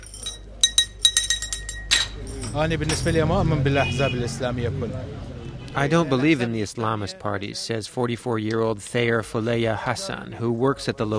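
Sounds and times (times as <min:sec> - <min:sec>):
glasses clinking in a tea shop: 0:00.0 - 0:03.3
speech: 0:02.5 - 0:11.1.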